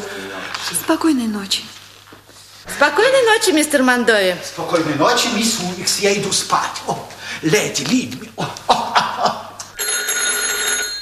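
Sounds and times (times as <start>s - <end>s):
speech: 0.9s - 1.7s, 2.8s - 9.4s
laughter: 8.1s - 9.8s
telephone bell ringing at night in a lodging: 9.8s - 11.0s.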